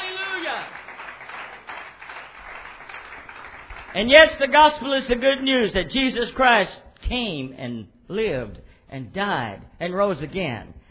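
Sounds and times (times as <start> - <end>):
audience clapping hands: 0.0 - 4.9
speech: 3.9 - 10.8.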